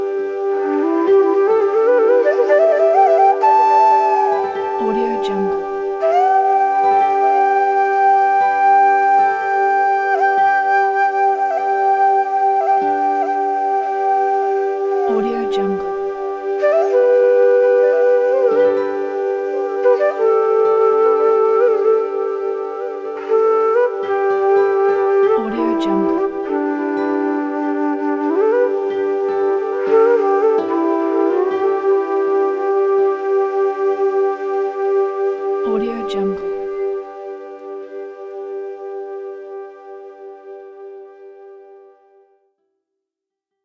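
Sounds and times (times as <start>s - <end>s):
meditative flute: 0.0s - 42.4s.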